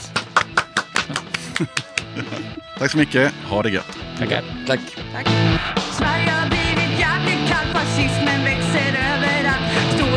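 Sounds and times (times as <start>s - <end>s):
small audience applause: 0.0s - 2.1s
laughter: 0.8s - 2.9s
speech: 1.6s - 9.2s.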